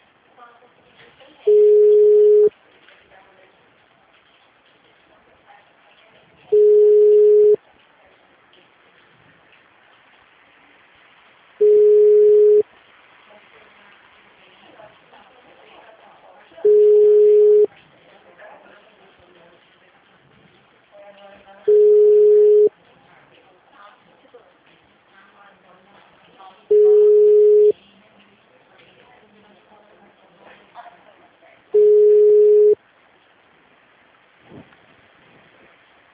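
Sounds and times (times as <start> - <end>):
faint hiss: 0.0 - 36.1
telephone ringing tone while placing a call: 1.5 - 2.5, 6.5 - 7.6, 11.6 - 12.6, 16.6 - 17.7, 21.7 - 22.7, 26.7 - 27.7, 31.8 - 32.8.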